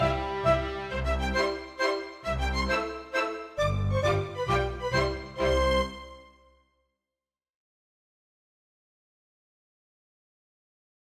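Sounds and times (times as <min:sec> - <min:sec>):
polka mazurka music: 0:00.0 - 0:06.4.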